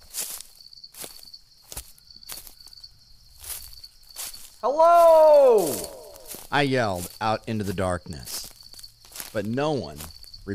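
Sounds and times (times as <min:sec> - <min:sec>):
footsteps crunching through dry leaves: 0:00.0 - 0:10.5
steady high insect chirp: 0:00.0 - 0:10.5
speech: 0:04.6 - 0:05.9, 0:06.5 - 0:08.4, 0:09.3 - 0:10.5.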